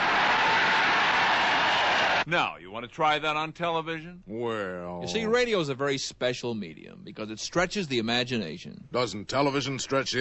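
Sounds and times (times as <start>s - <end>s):
huge crowd of extras cheering: 0.0s - 2.2s
speech: 2.3s - 10.1s.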